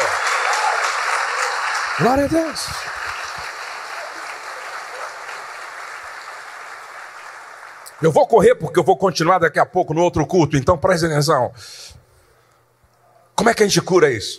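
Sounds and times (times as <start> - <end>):
audience applause: 0.0 - 8.0
speech: 2.0 - 3.0, 8.0 - 12.0, 13.4 - 14.3.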